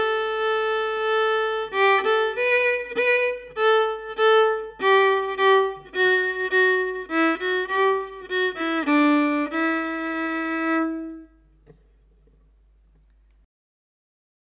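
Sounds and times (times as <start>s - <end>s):
solo fiddle playing slow bear dance: 0.0s - 11.5s.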